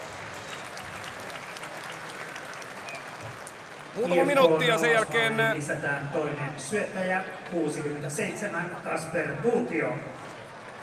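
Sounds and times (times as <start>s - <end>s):
applause for the winner: 0.0s - 5.6s
speech: 4.0s - 10.2s.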